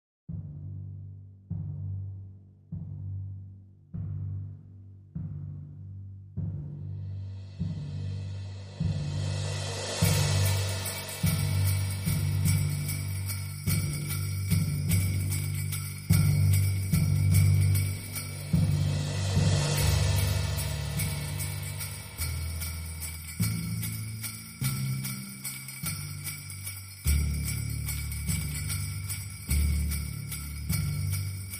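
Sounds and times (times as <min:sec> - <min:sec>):
drums: 0:00.3 - 0:31.5.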